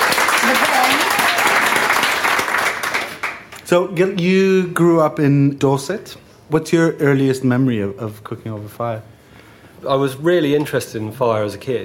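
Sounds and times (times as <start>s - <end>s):
audience applause: 0.0s - 3.5s
speech: 3.7s - 9.1s, 9.8s - 11.8s.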